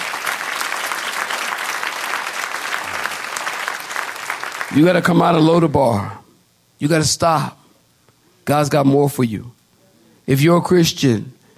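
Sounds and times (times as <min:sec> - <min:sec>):
audience clapping hands: 0:00.0 - 0:05.1
speech: 0:04.7 - 0:06.2, 0:06.8 - 0:07.6, 0:08.5 - 0:09.6, 0:10.3 - 0:11.4.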